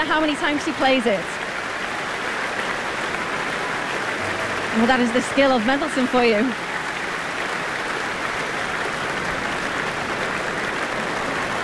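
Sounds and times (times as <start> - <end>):
speech: 0.0 - 1.4, 4.8 - 6.6
concert audience applause at the Royal Albert Hall: 0.0 - 11.6.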